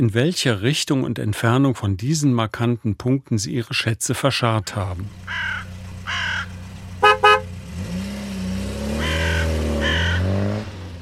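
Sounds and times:
speech: 0:00.0 - 0:06.2
car engine revving and pulling away: 0:05.1 - 0:11.0
crows cawing: 0:05.3 - 0:06.6, 0:09.0 - 0:10.3
car horn toots: 0:07.0 - 0:07.6.

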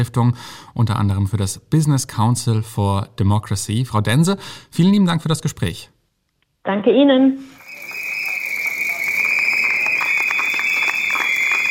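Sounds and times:
speech: 0:00.0 - 0:05.9, 0:06.6 - 0:07.6
shrill whistle at union strike protest: 0:07.5 - 0:11.6
crowd roar at union strike protest: 0:07.6 - 0:11.6.

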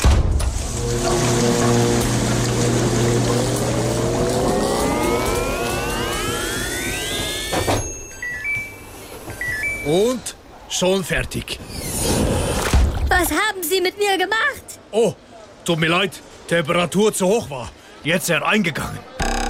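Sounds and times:
washing machine running with water: 0:00.4 - 0:09.8
speech: 0:02.6 - 0:03.9, 0:09.9 - 0:12.4, 0:13.2 - 0:19.1.

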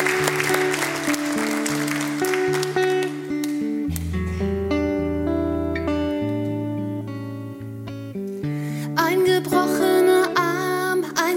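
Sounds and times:
crowd clapping: 0:00.0 - 0:04.0
song with sustained tones: 0:00.0 - 0:11.2.

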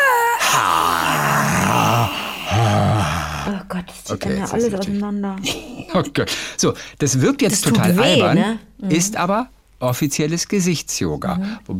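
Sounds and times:
person imitating a lion's roar: 0:00.4 - 0:03.6
speech: 0:00.6 - 0:00.9, 0:04.1 - 0:11.7.

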